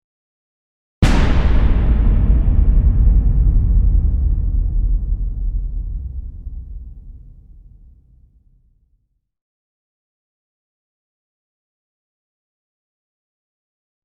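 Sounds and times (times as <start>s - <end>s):
huge explosion: 1.0s - 8.6s.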